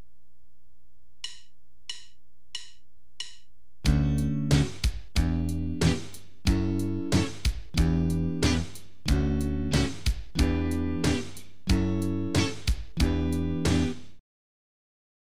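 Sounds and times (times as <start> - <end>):
guitar chord progressions using A-based barre chords: 3.9 - 14.0.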